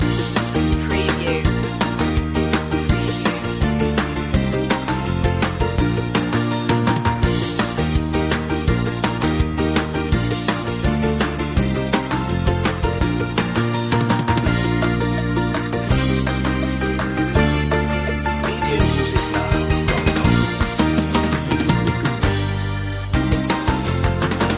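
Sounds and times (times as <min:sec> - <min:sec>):
music loop: 0:00.0 - 0:13.3, 0:14.2 - 0:24.5.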